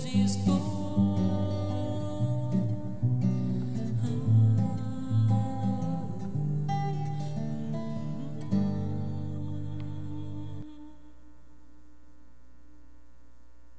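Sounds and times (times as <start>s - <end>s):
live acoustic music: 0.0s - 10.9s.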